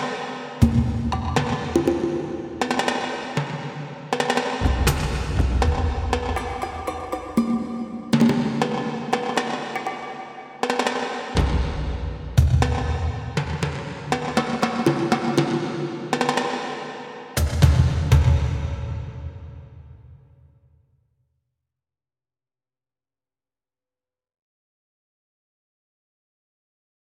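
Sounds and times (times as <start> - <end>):
percussion: 0.0 - 20.5.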